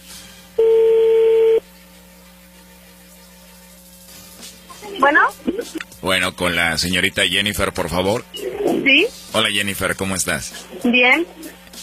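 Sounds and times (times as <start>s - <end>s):
telephone tone as outgoing call is placed: 0.6s - 1.7s
speech: 5.1s - 11.6s.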